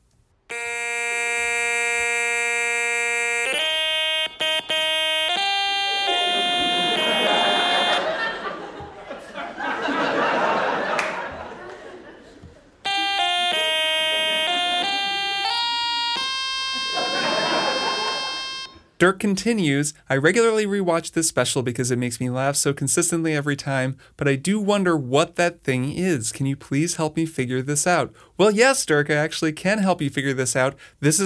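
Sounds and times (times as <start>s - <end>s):
stylus-played older electronic device fixed tones: 0.5s - 8.1s, 12.9s - 18.9s
laughter: 5.8s - 18.7s
speech: 19.0s - 31.2s.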